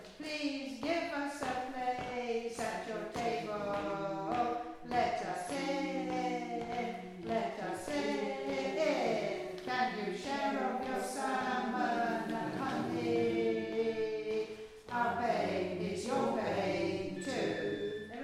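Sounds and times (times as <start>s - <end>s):
spoken word rhythm: 0.1s - 18.2s.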